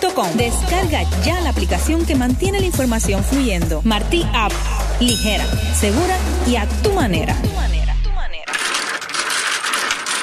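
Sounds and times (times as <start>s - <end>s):
speech: 0.2s - 7.9s
domino tiles shuffled and clacking together on a table: 8.5s - 10.2s.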